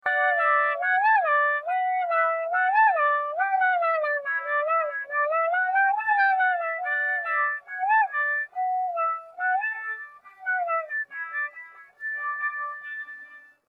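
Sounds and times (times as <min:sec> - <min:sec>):
instrumental ringtone: 0:00.0 - 0:13.6.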